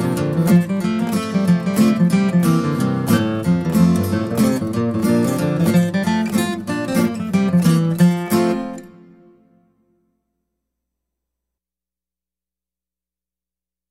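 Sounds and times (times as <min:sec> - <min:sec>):
guitar: 0:00.0 - 0:10.4.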